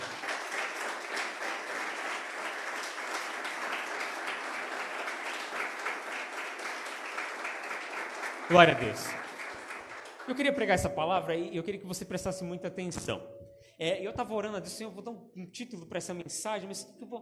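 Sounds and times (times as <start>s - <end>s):
audience applauding: 0.0s - 11.1s
speech: 8.5s - 9.2s, 10.3s - 17.2s.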